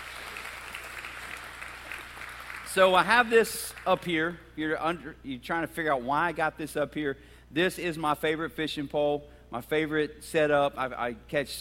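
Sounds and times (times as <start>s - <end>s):
applause from a church audience: 0.0s - 3.8s
speech: 2.8s - 11.5s.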